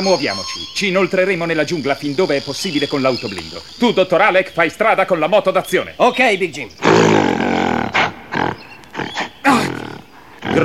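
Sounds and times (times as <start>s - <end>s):
speech: 0.0s - 7.6s
giant gorilla roaring: 6.8s - 10.6s.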